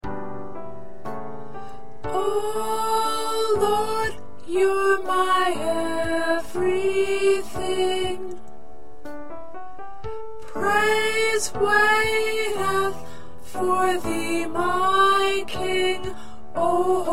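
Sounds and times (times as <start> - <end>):
soprano singing: 2.0 - 8.7, 10.4 - 17.1.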